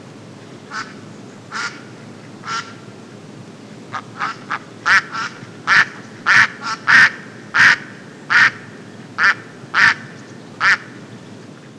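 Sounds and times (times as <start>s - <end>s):
duck quacking: 0.7s - 1.8s, 2.4s - 2.8s, 3.9s - 11.0s.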